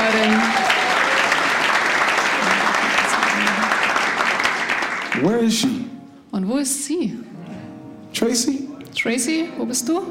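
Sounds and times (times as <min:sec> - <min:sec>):
audience applause: 0:00.0 - 0:05.6
speech: 0:05.5 - 0:05.8, 0:06.4 - 0:07.4, 0:08.2 - 0:10.1.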